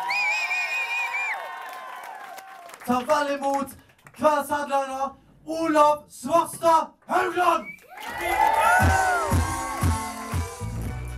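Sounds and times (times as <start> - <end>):
audience applause: 0.0 - 4.1, 7.9 - 10.8
speech: 2.8 - 9.0.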